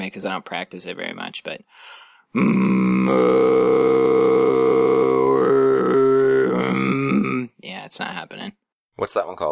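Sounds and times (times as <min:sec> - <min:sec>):
speech: 0:00.1 - 0:04.7, 0:07.9 - 0:09.5
subharmonic throat singing drone: 0:02.4 - 0:07.5.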